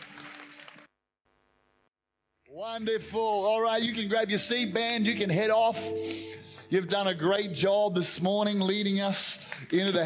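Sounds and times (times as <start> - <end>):
audience clapping: 0.0 - 0.9, 9.0 - 10.0
speech: 2.6 - 10.0
sustained tone: 4.6 - 7.2.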